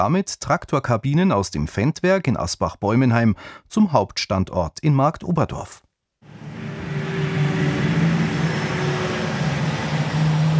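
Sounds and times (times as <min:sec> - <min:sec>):
speech: 0:00.0 - 0:05.8
large red electric truck humming: 0:06.3 - 0:10.5
tyres of large red electric truck rolling on asphalt: 0:06.4 - 0:10.5.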